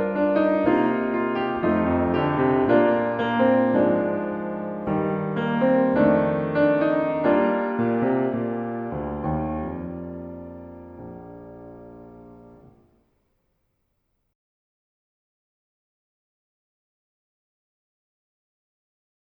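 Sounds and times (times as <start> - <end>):
musical accompaniment: 0.0 - 12.8.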